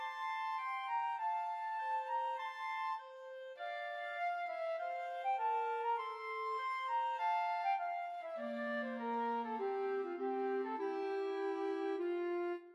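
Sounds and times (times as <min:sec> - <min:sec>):
slow flute and clarinet duet: 0:00.0 - 0:12.7.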